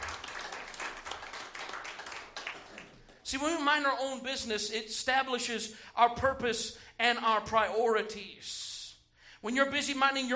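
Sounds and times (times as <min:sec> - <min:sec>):
crowd clapping: 0:00.0 - 0:03.2
speech: 0:03.3 - 0:08.6, 0:09.4 - 0:10.3.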